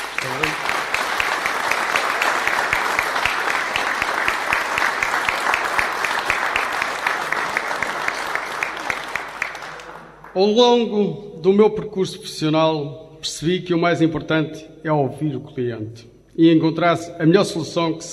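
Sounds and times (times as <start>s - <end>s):
audience applause: 0.0s - 10.4s
speech: 10.4s - 18.1s.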